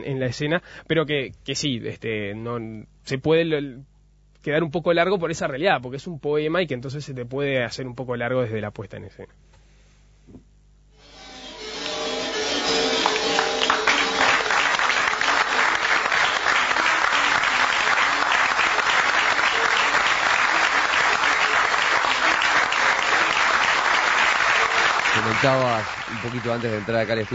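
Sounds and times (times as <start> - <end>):
speech: 0.0 - 9.4, 25.4 - 27.3
theatre audience applause: 11.8 - 27.3.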